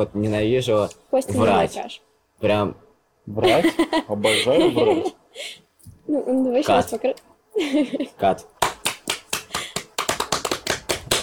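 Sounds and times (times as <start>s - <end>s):
speech: 0.0s - 8.5s
laughter: 3.4s - 5.2s
people clapping: 8.6s - 11.2s.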